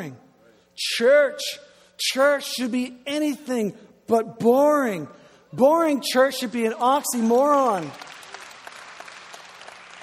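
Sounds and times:
speech: 0.0s - 0.2s, 0.8s - 8.1s
audience clapping: 6.9s - 10.0s.

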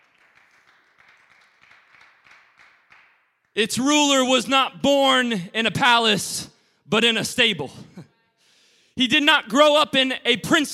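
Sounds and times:
audience clapping hands: 0.0s - 3.6s
speech: 3.6s - 8.0s, 9.0s - 10.7s.

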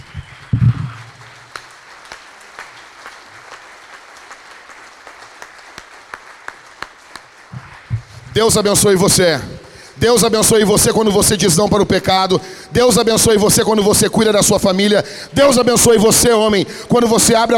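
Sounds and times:
audience applause: 0.0s - 7.9s
speech: 8.4s - 17.5s.

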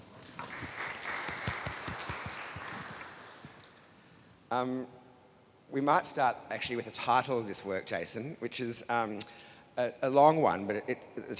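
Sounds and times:
audience applause welcoming a speaker at a talk: 0.0s - 3.7s
speech: 4.5s - 5.0s, 5.7s - 11.3s.

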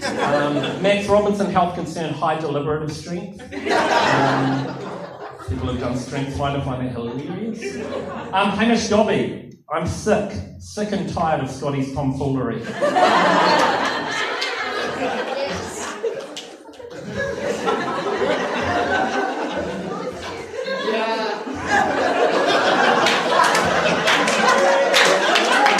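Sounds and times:
crowd laughing: 0.0s - 1.2s, 3.3s - 6.0s, 6.9s - 8.6s, 12.6s - 25.7s
speech: 0.3s - 13.7s
lively crowd cheering: 3.7s - 5.3s, 12.8s - 25.7s
scattered clapping: 16.1s - 17.0s, 22.9s - 25.7s.

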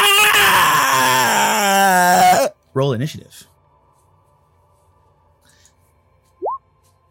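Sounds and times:
person imitating a monster scream: 0.0s - 2.6s
speech: 2.8s - 3.5s.

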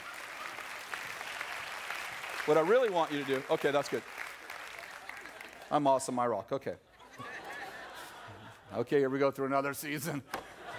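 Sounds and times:
audience applause: 0.0s - 5.8s
speech: 2.4s - 4.2s, 5.7s - 7.3s, 8.7s - 10.4s
laughter: 6.9s - 9.1s, 10.0s - 10.7s.

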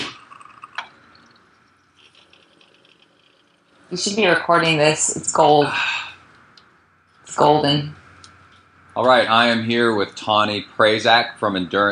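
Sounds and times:
coffee machine dripping onto counter: 0.0s - 3.9s
speech: 3.9s - 6.0s, 7.4s - 8.0s, 9.0s - 11.9s.

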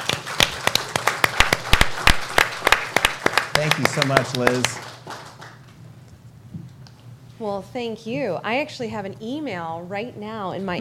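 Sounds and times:
audience applause: 0.0s - 5.7s
speech: 3.6s - 4.9s, 7.4s - 10.7s.

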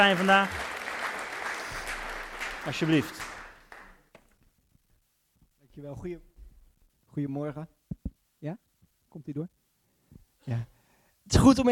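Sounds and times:
speech: 0.0s - 0.6s, 2.6s - 3.2s, 5.8s - 6.3s, 7.2s - 7.8s, 8.4s - 8.6s, 9.2s - 9.6s, 10.4s - 10.7s, 11.3s - 11.7s
audience applause: 0.0s - 4.3s.

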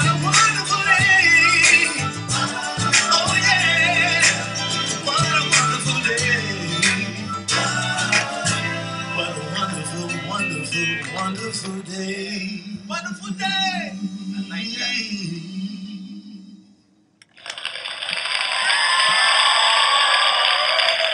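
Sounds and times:
sung melody with music: 0.0s - 16.8s
hand clapping: 17.2s - 21.1s.

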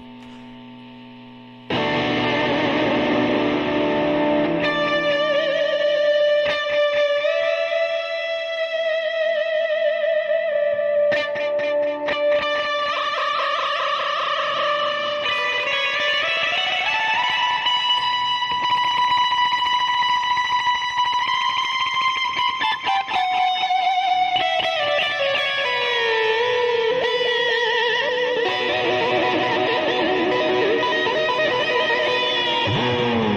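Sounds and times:
distorted electric guitar with tremolo arm: 0.0s - 33.3s.

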